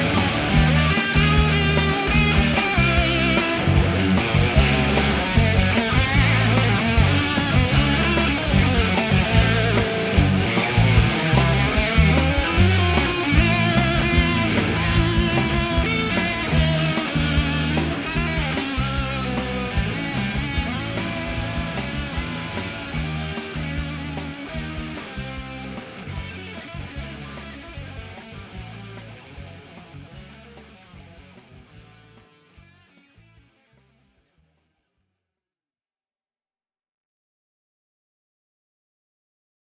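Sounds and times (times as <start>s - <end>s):
musical riff: 0.0s - 30.7s.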